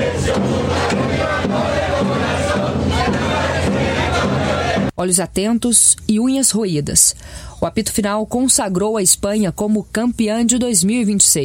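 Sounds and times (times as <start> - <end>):
dense stadium crowd roaring and chanting: 0.0 - 4.9
speech: 5.0 - 11.4.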